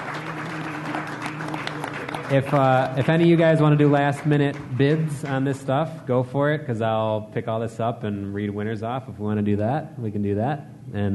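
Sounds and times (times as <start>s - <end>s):
crowd applauding: 0.0s - 5.6s
speech: 2.3s - 11.1s.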